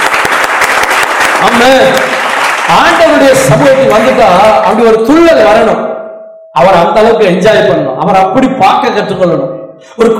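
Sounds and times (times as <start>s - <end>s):
church congregation clapping along rhythmically: 0.0s - 4.8s
speech: 1.4s - 6.0s, 6.6s - 10.1s.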